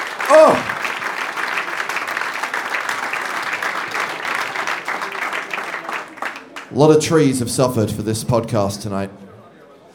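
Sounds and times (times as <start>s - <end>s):
audience applause: 0.0s - 6.7s
speech: 0.3s - 0.7s, 6.8s - 9.2s.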